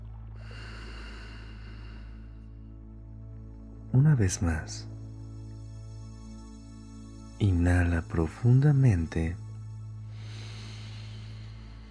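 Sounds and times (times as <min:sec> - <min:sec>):
deep exhale during a guided breathing exercise: 0:00.4 - 0:02.6, 0:10.1 - 0:11.8
speech: 0:04.0 - 0:04.9, 0:07.4 - 0:09.4.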